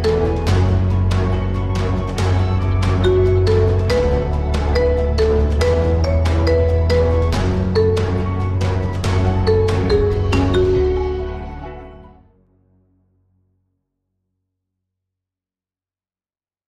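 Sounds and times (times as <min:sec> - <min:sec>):
marimba: 0:00.0 - 0:01.4, 0:02.6 - 0:11.8.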